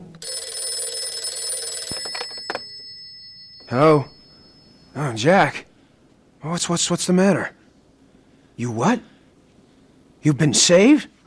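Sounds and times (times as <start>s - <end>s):
telephone bell ringing: 0.2s - 5.4s
speech: 3.7s - 4.1s, 5.0s - 5.7s, 6.4s - 7.6s, 8.6s - 9.1s, 10.2s - 11.2s.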